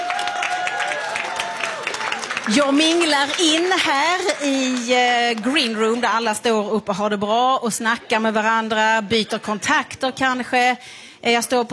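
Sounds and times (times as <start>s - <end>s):
audience applause at a competition final: 0.0s - 6.0s
speech: 2.5s - 11.7s.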